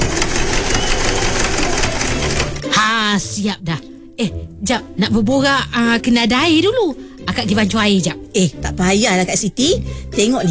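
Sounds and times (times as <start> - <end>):
sewing machine stitching clothes: 0.0 - 2.7
speech: 3.1 - 10.4.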